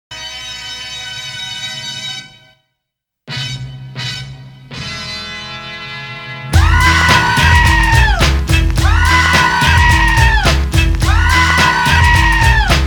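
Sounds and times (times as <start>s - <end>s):
person screaming: 6.6s - 8.2s, 8.8s - 12.8s.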